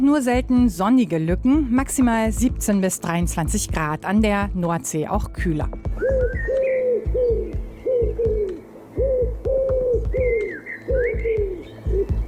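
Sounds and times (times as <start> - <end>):
speech: 0.1 - 6.4
pigeons cooing: 5.9 - 12.2.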